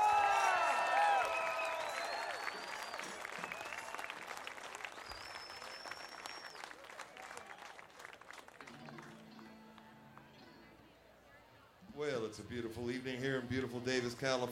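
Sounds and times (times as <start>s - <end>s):
live concert audience applause in Davis, California: 0.0s - 10.3s
speech: 12.3s - 14.4s.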